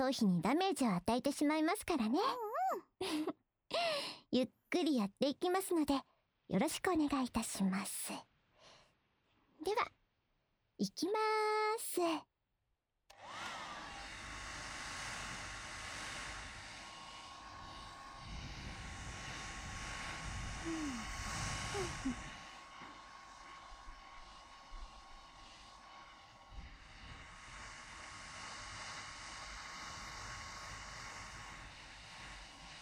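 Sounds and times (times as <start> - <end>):
speech: 0.0 - 8.3, 9.6 - 10.0, 10.8 - 12.3, 20.6 - 21.2
hair dryer blowing air: 3.0 - 3.3, 13.1 - 32.7.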